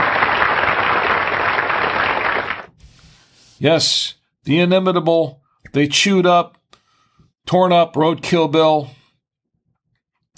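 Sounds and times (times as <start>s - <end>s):
applause: 0.0s - 2.7s
speech: 3.6s - 6.6s, 7.4s - 9.0s.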